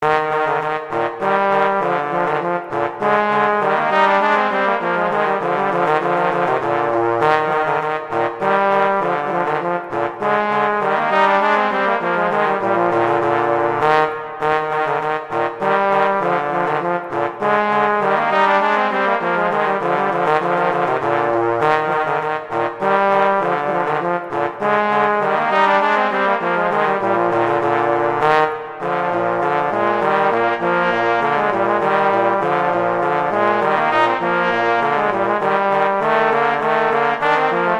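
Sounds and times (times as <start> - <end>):
horn duet: 0.0 - 37.7.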